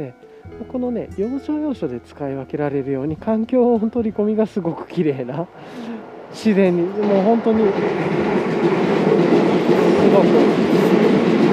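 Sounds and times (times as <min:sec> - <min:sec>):
speech: 0:00.0 - 0:08.8, 0:10.1 - 0:11.2
train rumbling past heard through earphones: 0:03.8 - 0:11.5
wheels clattering on rails: 0:04.7 - 0:11.5.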